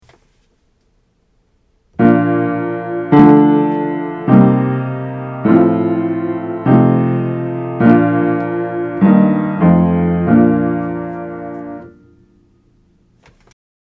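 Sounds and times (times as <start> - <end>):
triads in inversion: 2.0 - 12.2.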